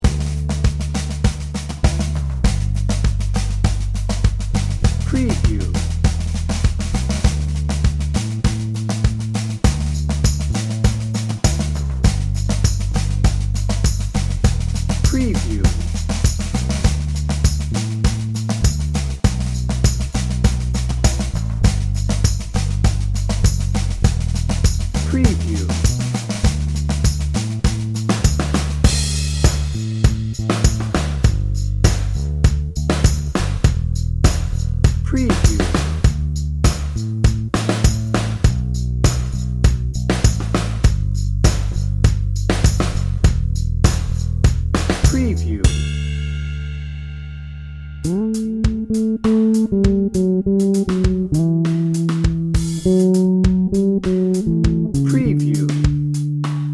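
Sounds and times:
Americana morning music: 0.0 - 46.6, 48.0 - 56.7.

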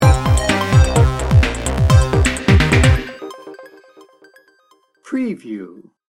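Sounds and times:
sting bumper: 0.0 - 3.6.

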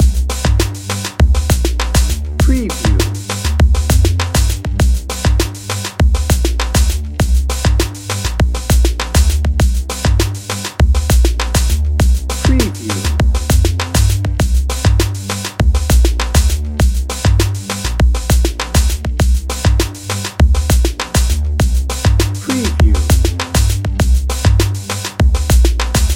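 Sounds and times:
electro drum and bass music: 0.0 - 26.1.

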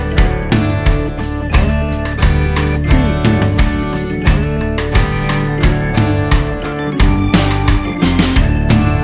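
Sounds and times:
swamp jam loop: 0.1 - 8.9.

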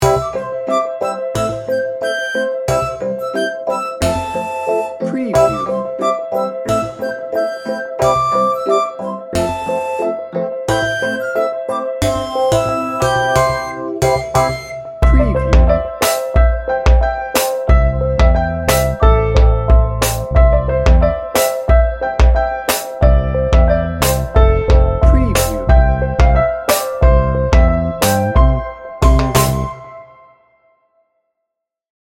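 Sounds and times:
upbeat childlike music: 0.0 - 30.3.

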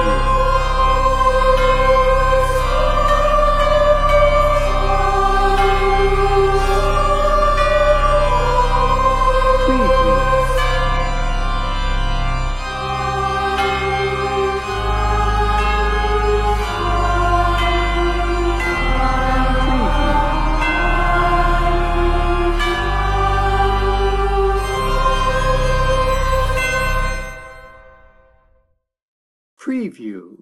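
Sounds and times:
choir: 0.0 - 11.4, 12.5 - 27.6
organ: 0.0 - 27.9
bells: 0.0 - 28.1.

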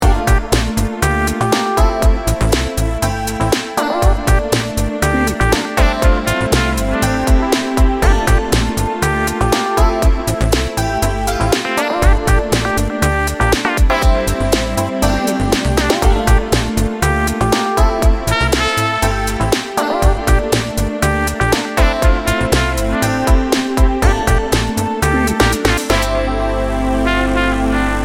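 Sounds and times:
smooth laid-back jazz: 0.0 - 28.0.

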